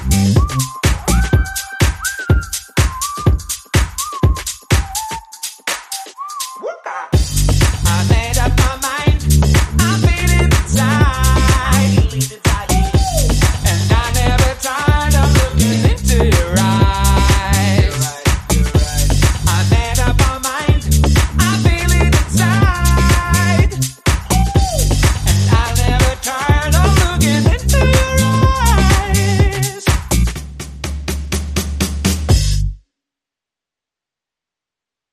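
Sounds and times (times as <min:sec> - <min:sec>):
bass: 0:00.0 - 0:01.4, 0:07.2 - 0:32.8
vocals: 0:00.0 - 0:04.2, 0:05.0 - 0:30.3
drums: 0:00.0 - 0:32.7.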